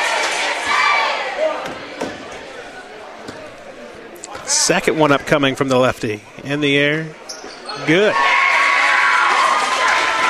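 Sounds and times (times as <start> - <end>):
roaring ovation from cheering crowd in hula skirts: 0.0 - 4.5, 7.7 - 10.2
speech: 4.5 - 7.2, 7.8 - 8.3.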